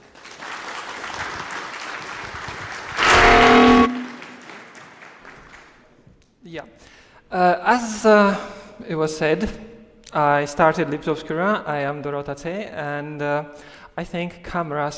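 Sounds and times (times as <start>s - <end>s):
audience applause: 0.0s - 5.9s
speech: 6.5s - 14.9s.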